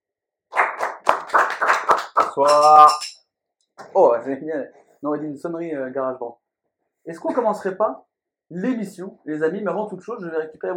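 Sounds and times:
people clapping hands: 0:00.5 - 0:03.2
speech: 0:02.4 - 0:03.1, 0:04.0 - 0:06.4, 0:07.0 - 0:10.7.

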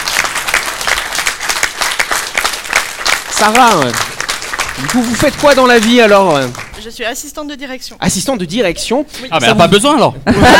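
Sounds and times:
audience applause: 0:00.0 - 0:06.9
speech: 0:03.4 - 0:04.1, 0:04.8 - 0:10.5
laughter: 0:04.8 - 0:05.4, 0:08.6 - 0:10.5.

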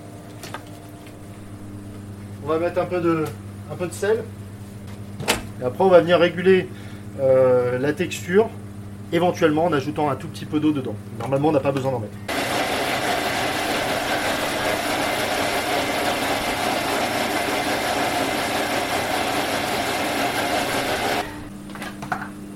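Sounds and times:
low hum: 0:00.0 - 0:11.2
speech: 0:02.4 - 0:04.4, 0:05.2 - 0:12.3
blender whirring at high speed blending a purée: 0:12.3 - 0:21.5.

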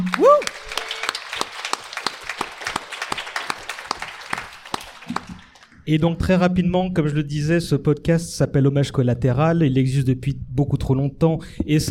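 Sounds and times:
person whooping: 0:00.0 - 0:01.2
small group applauding for the sound engineer: 0:00.0 - 0:05.8
speech: 0:05.9 - 0:11.8.

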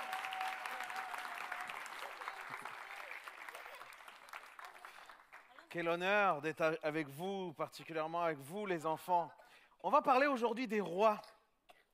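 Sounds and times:
audience applause: 0:00.0 - 0:05.8
speech: 0:05.7 - 0:11.4.

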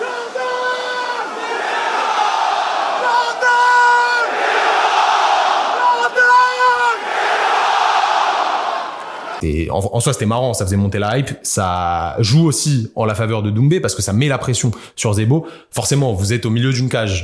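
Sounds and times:
arena crowd shouting taunts at fighter: 0:00.0 - 0:09.4
speech: 0:09.4 - 0:17.2.

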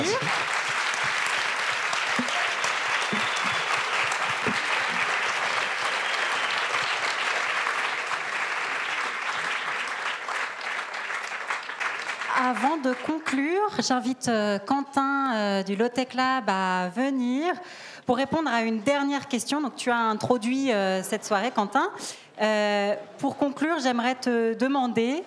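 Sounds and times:
audience applause: 0:00.0 - 0:13.4
speech: 0:12.8 - 0:25.2.

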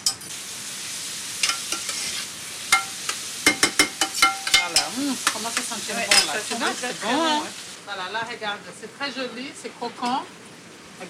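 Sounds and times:
onions sautéing in a pan: 0:00.0 - 0:11.0
utensil clicking and scraping while stirring: 0:01.4 - 0:02.9
speech: 0:05.4 - 0:10.4.

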